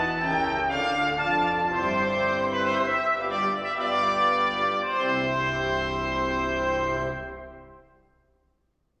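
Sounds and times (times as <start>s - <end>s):
wedding march on trumpet and organ: 0.0s - 8.1s.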